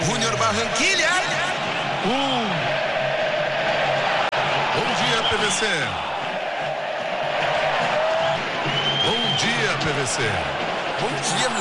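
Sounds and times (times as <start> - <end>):
cheers: 0.0 - 11.5
large stadium crowd of football fans roaring: 0.0 - 11.5
speech: 2.0 - 2.4, 10.1 - 11.5
whistles: 8.7 - 9.8.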